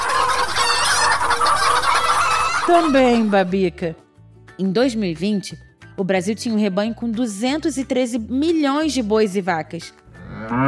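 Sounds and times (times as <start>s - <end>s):
large poultry flock of chickens clucking: 0.0s - 2.7s
laughter: 0.0s - 3.5s
speech: 2.7s - 4.0s, 4.6s - 10.6s.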